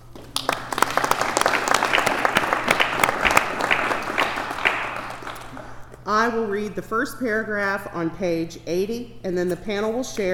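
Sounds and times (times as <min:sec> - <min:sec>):
meeting audience applause welcoming a two-person panel: 0:00.0 - 0:05.8
speech: 0:06.1 - 0:10.3.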